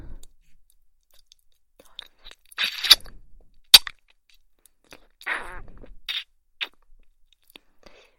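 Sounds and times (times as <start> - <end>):
kissing sounds: 2.6 - 4.0, 5.3 - 6.9.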